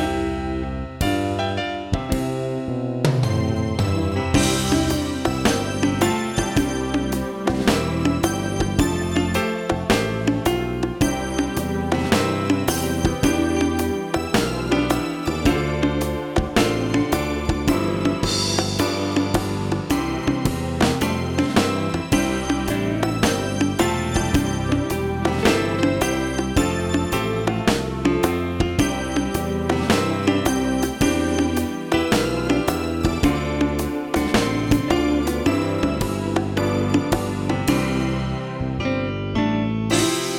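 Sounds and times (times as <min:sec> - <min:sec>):
bongos: 0:00.0 - 0:38.8, 0:39.9 - 0:40.3.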